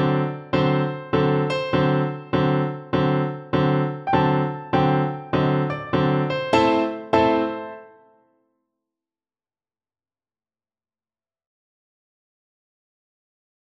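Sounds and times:
piano duet: 0.0s - 8.2s.

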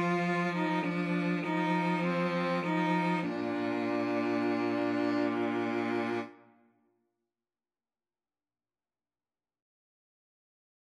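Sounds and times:
cello: 0.0s - 6.5s
two violins: 0.0s - 6.5s.

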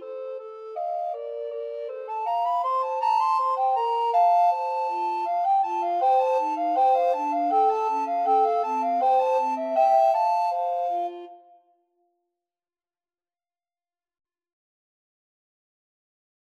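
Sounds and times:
recorder trio playing a ragtime piece: 0.0s - 11.3s.

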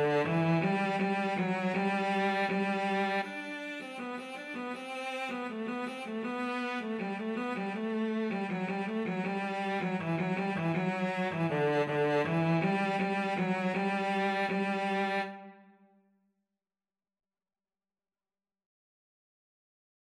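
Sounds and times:
cello duet: 0.0s - 15.6s.

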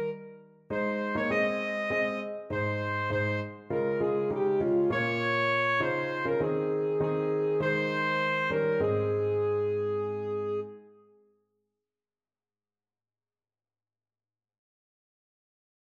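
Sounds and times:
alto saxophone: 0.0s - 11.0s.

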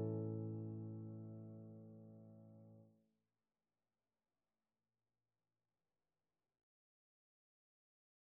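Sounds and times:
piano duet: 0.0s - 2.8s.

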